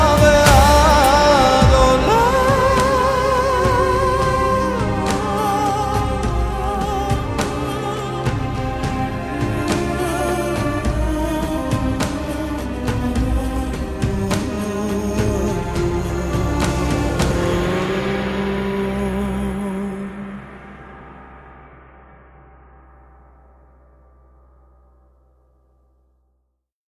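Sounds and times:
people singing Jewish songs: 0:00.0 - 0:20.6.

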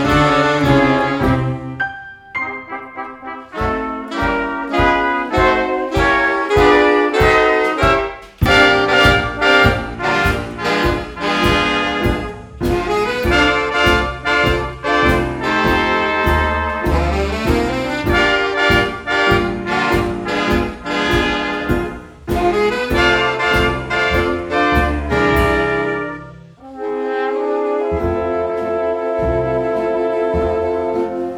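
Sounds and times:
jazz orchestra playing: 0:00.0 - 0:31.3.

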